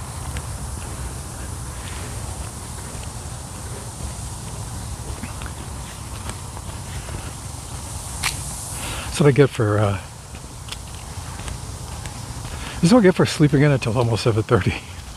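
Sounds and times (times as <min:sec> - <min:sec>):
footsteps crossing a street on a morning walk: 0:00.0 - 0:15.1
outdoor hiss: 0:00.0 - 0:15.1
speech: 0:09.2 - 0:10.1, 0:12.8 - 0:14.9.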